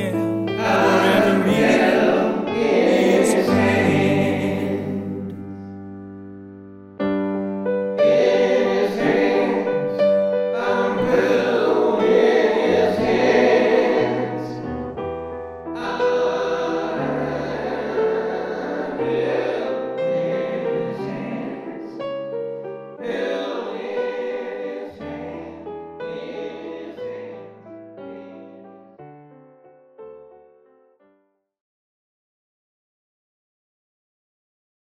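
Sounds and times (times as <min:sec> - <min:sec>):
choir singing: 0:00.0 - 0:05.7, 0:07.9 - 0:15.0, 0:15.8 - 0:28.8.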